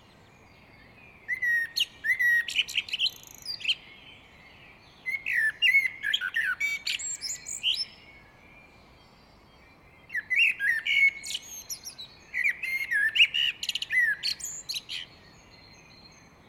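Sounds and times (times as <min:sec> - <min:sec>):
great tit calls: 0:00.7 - 0:03.9, 0:05.0 - 0:08.2, 0:10.0 - 0:16.1.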